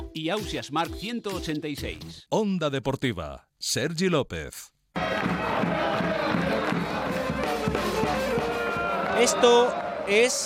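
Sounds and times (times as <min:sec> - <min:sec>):
speech: 0:00.2 - 0:05.9, 0:09.2 - 0:10.4
basketball arena crowd cheering and shouting: 0:05.0 - 0:10.4.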